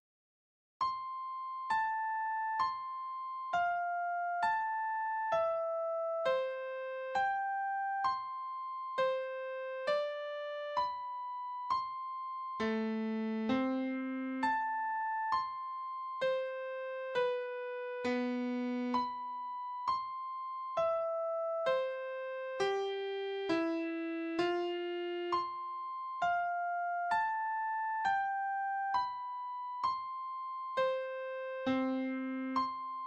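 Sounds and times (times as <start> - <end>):
adagio music piece: 1.0 - 33.0.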